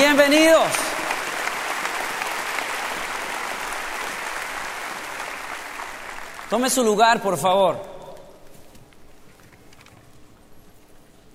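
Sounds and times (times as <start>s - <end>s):
audience applause: 0.0s - 7.3s
speech: 0.3s - 0.8s, 6.5s - 7.9s.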